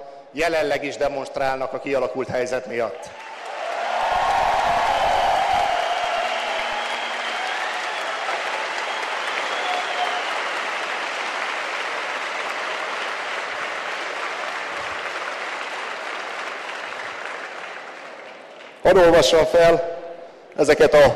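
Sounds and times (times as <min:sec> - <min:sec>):
speech: 0:00.3 - 0:03.2, 0:18.9 - 0:20.0, 0:20.6 - 0:21.1
audience applause: 0:03.1 - 0:19.4.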